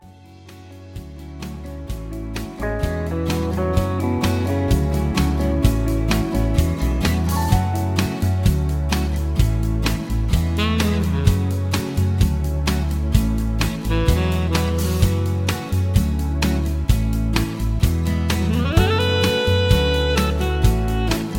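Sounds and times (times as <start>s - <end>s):
instrumental music without leads: 0.0s - 21.3s.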